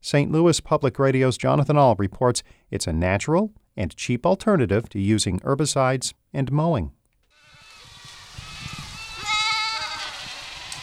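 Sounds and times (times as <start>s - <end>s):
speech: 0.0s - 7.0s
outdoor ambience: 7.2s - 10.8s
Spanish goats bleating in a field: 7.4s - 10.8s.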